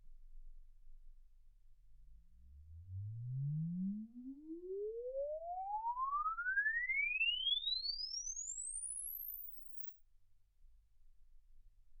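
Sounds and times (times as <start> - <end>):
exponential sine sweep from 10 Hz to 24 kHz: 2.8 - 9.9.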